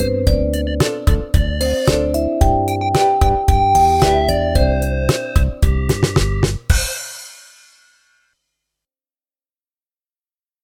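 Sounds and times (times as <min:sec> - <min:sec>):
Khmer vowel song: 0:00.0 - 0:07.3.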